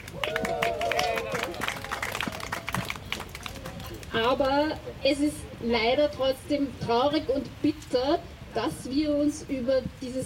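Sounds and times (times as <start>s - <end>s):
brief audience applause: 0.0s - 4.1s
speech: 4.2s - 10.2s.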